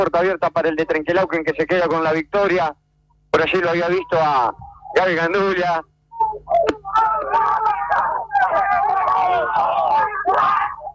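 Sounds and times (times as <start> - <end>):
speech: 0.0 - 7.7
crowd cheering and shouting at race finish: 6.5 - 10.9.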